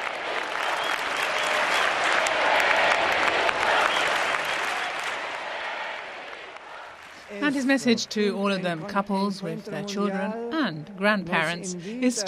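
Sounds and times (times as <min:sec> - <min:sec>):
crowd of thousands of families applauding Pope Benedict XVI in Valencia: 0:00.0 - 0:07.4
speech: 0:07.6 - 0:12.2.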